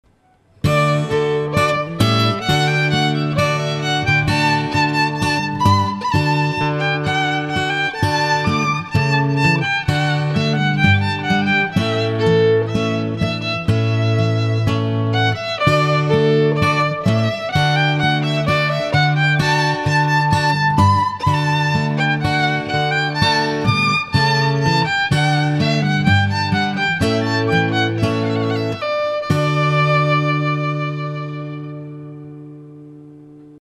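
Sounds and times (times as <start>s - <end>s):
violin: 0.6s - 33.0s.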